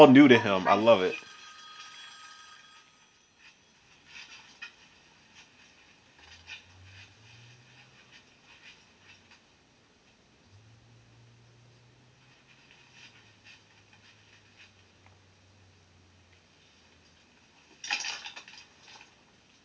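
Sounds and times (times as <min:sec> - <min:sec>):
speech: 0:00.0 - 0:01.3
telephone bell ringing: 0:00.0 - 0:04.1.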